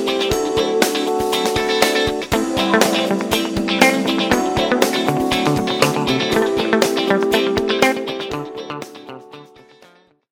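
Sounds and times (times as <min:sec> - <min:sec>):
jazz guitar ringtone on a Hisense A5 phone: 0:00.6 - 0:08.8.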